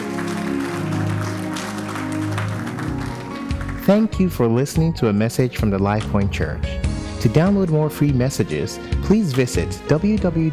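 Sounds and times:
audience clapping: 0.0s - 4.6s, 9.2s - 9.6s
speech: 3.9s - 10.5s.

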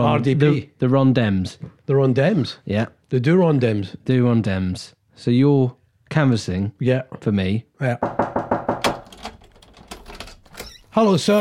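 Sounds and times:
speech: 0.0s - 8.2s, 11.0s - 11.4s
knocking on a door: 8.0s - 9.2s.

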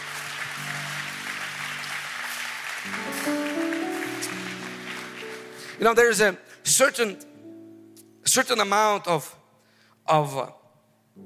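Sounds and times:
audience clapping: 0.0s - 6.2s
speech: 2.8s - 3.1s, 5.8s - 7.3s, 8.2s - 9.4s, 10.1s - 10.6s.

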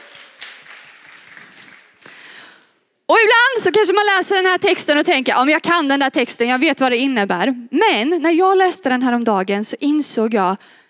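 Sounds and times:
audience applause: 0.0s - 2.2s
speech: 3.1s - 10.8s.

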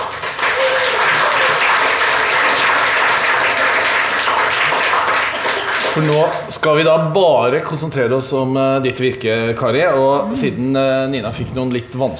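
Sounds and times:
audience applause: 0.0s - 6.5s
speech: 6.0s - 12.1s.

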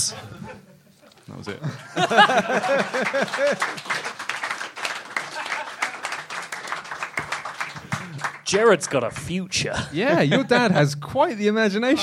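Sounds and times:
speech: 0.0s - 0.7s, 1.3s - 4.0s, 8.5s - 12.0s
laughter: 0.0s - 4.1s, 5.0s - 6.3s, 9.5s - 10.9s
applause: 2.4s - 9.4s.

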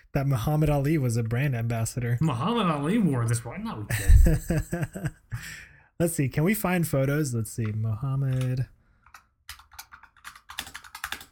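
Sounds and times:
speech: 0.1s - 8.8s
laughter: 3.9s - 5.2s
rapid typing on a computer keyboard: 8.3s - 11.2s.

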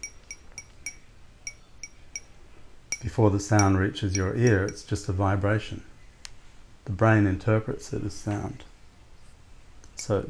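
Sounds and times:
glass struck lightly: 0.0s - 2.3s, 2.9s - 4.9s
speech: 3.0s - 5.9s, 6.9s - 8.7s, 10.0s - 10.2s.

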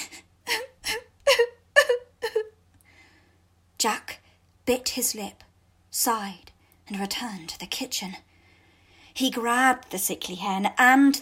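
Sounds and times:
girl sobbing: 0.0s - 2.6s
speech: 3.8s - 4.0s, 4.7s - 5.4s, 6.0s - 8.3s, 9.2s - 11.2s.

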